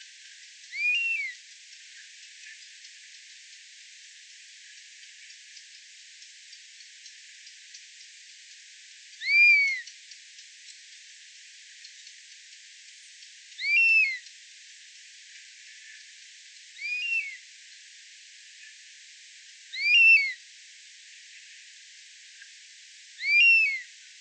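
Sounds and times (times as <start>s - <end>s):
buzzard bird songs: 0.6s - 3.4s, 9.1s - 10.5s, 11.8s - 14.4s, 16.0s - 17.4s, 19.7s - 20.4s, 23.2s - 23.9s.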